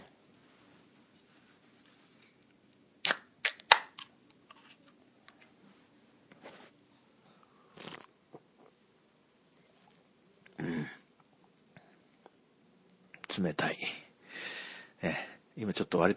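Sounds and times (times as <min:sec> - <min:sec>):
chilled can of Kirin Ichiban Shibori 100% malt beer cracked open: 0:03.0 - 0:04.1, 0:07.8 - 0:08.1
person drinking beer: 0:07.4 - 0:08.7
speech: 0:13.4 - 0:14.0, 0:15.0 - 0:16.1.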